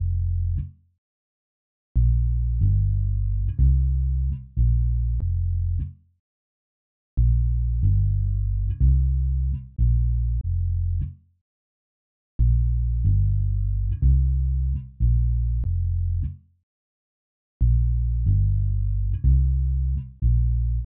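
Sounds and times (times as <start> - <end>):
bass: 0.0 - 0.8, 2.0 - 6.0, 7.2 - 11.2, 12.4 - 16.5, 17.6 - 20.8.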